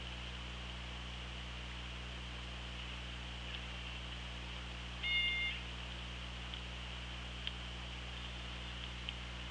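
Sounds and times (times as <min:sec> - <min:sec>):
constant low electrical hum and hiss: 0:00.0 - 0:09.5
orca pulsed call: 0:05.0 - 0:05.7
faint clicks: 0:07.4 - 0:09.2.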